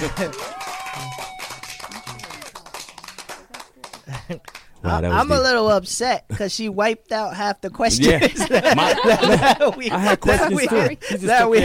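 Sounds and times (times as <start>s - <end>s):
speech: 0.0s - 1.2s, 4.3s - 11.6s
laughter: 0.0s - 2.5s, 3.9s - 5.3s, 7.9s - 11.6s
applause: 0.0s - 4.7s.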